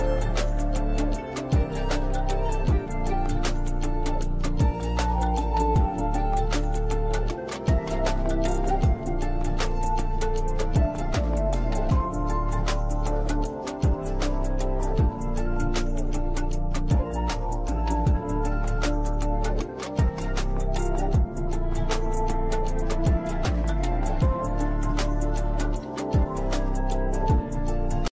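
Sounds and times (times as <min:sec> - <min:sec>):
flute ringtone: 0:00.0 - 0:28.1.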